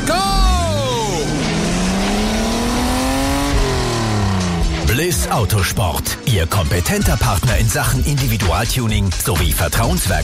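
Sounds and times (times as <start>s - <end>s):
race car number 12 accelerating out of the pit lane: 0.5s - 6.3s
speech: 5.3s - 10.2s.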